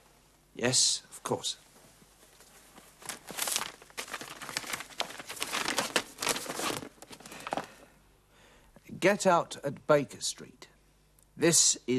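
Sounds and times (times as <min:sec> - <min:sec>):
speech: 0:00.6 - 0:01.6, 0:09.0 - 0:10.6, 0:11.4 - 0:11.9
paper map crinkling as it is unfolded and handled: 0:02.2 - 0:07.8.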